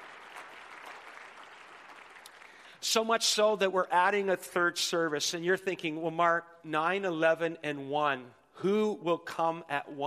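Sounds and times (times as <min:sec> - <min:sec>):
audience clapping: 0:00.0 - 0:03.1
speech: 0:02.8 - 0:10.0.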